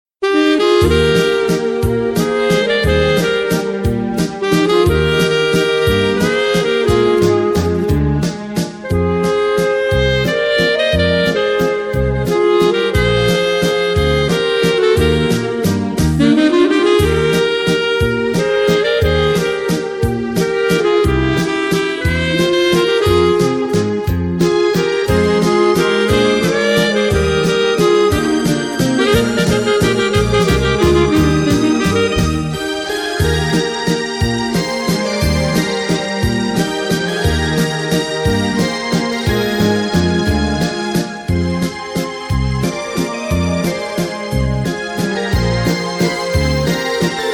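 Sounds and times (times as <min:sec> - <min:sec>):
two saxophones: 0:00.2 - 0:47.3.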